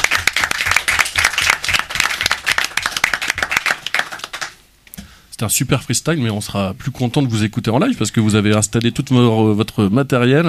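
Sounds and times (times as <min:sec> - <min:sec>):
audience applause after a freestyle rap: 0:00.0 - 0:04.6
speech: 0:05.4 - 0:10.4.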